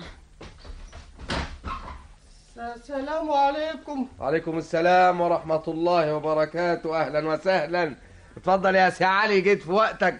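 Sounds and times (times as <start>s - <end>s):
apartment door being opened: 0.0s - 2.2s
speech: 2.6s - 10.1s.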